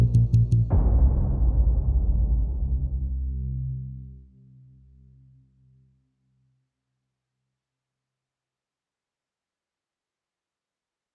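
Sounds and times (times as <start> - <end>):
epic hybrid underscore music: 0.0 - 5.1.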